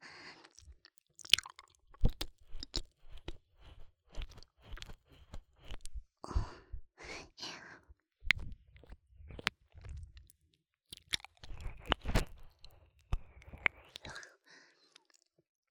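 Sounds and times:
ear licking sounds: 0.5s - 5.9s, 10.9s - 14.2s
soft biting sounds: 0.5s - 5.9s, 8.3s - 15.3s.

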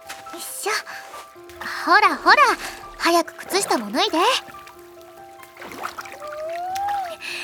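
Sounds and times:
feet splashing into river water: 0.0s - 7.4s
speech: 1.8s - 4.5s
faint steady whistling tone: 6.2s - 7.4s.

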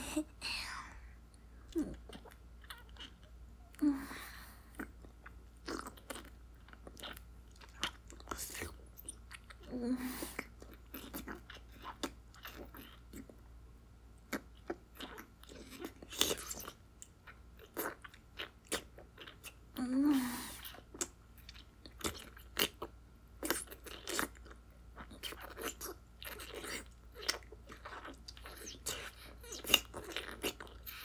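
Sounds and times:
wet mouth sounds ASMR: 0.0s - 13.4s, 14.2s - 31.0s.

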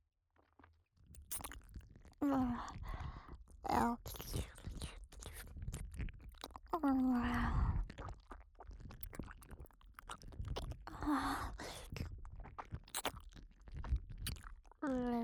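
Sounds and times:
ear licking sounds in the right ear: 1.1s - 15.2s
person whispering in the right ear: 2.2s - 13.1s, 14.3s - 15.2s.

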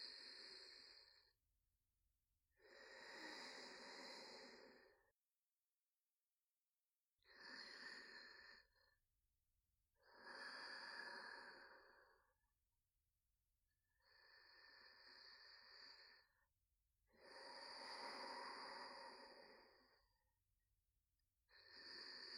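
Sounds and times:
person breathing in sleep: 0.0s - 1.4s, 2.6s - 5.1s, 7.2s - 8.9s, 10.0s - 12.4s, 13.9s - 16.4s, 17.1s - 20.2s, 21.5s - 22.3s.

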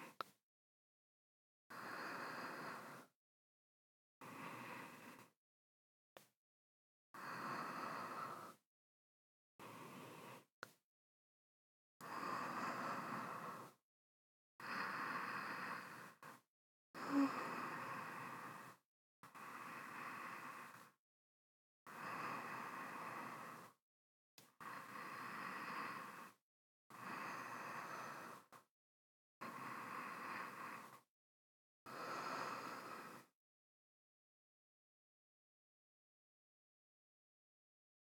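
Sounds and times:
person breathing in sleep: 1.7s - 3.1s, 4.2s - 5.4s, 7.2s - 8.6s, 9.6s - 10.5s, 12.0s - 13.8s, 14.6s - 16.4s, 17.0s - 21.0s, 21.9s - 23.8s, 24.6s - 28.7s, 29.4s - 31.1s, 31.9s - 33.3s.

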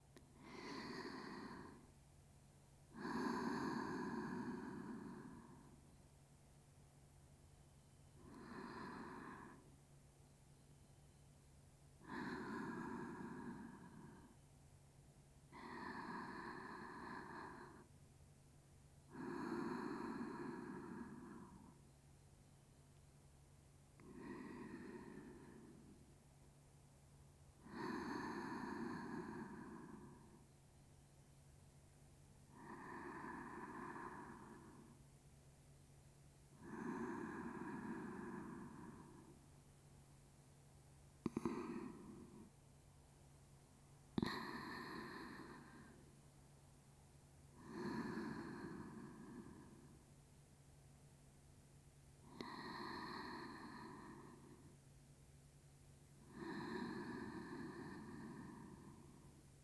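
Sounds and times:
sleep breathing on the left side: 0.4s - 1.9s, 3.0s - 5.8s, 8.2s - 9.8s, 12.0s - 14.4s, 15.5s - 17.9s, 19.1s - 21.8s, 24.0s - 26.1s, 27.6s - 30.5s, 32.5s - 35.0s, 36.6s - 39.4s, 41.3s - 42.6s, 44.2s - 46.2s, 47.5s - 50.0s, 52.2s - 54.8s, 56.2s - 59.4s.

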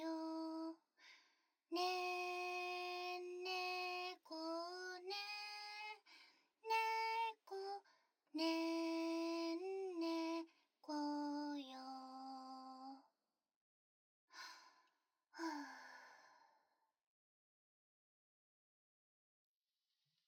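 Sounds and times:
lullaby: 0.0s - 13.1s, 15.4s - 16.5s.

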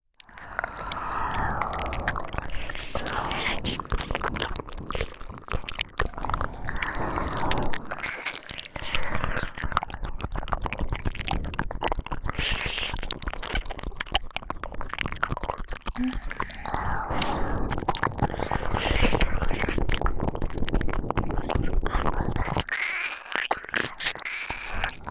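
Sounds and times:
ASMR ear licking sounds on both sides: 0.2s - 25.0s.

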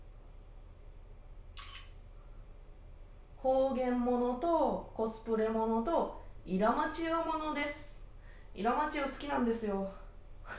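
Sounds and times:
camera shutter click as a photo is taken: 1.6s - 1.9s
speech: 3.4s - 7.9s, 8.6s - 10.5s.

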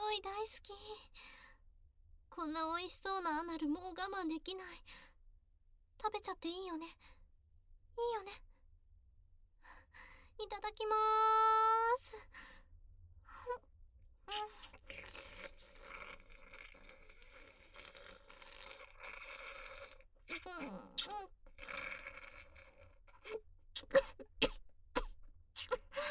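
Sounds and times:
speech: 0.1s - 1.4s, 2.3s - 5.1s, 6.0s - 7.1s, 7.9s - 8.5s, 10.4s - 12.5s, 14.3s - 15.7s, 20.3s - 22.1s
person choking coughs with throat clearing and gasps: 23.8s - 25.9s.

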